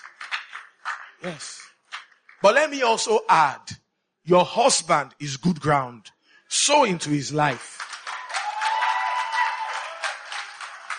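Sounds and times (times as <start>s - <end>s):
audience clapping: 0.0s - 3.1s, 7.4s - 10.9s
speech: 1.2s - 1.7s, 2.4s - 7.8s.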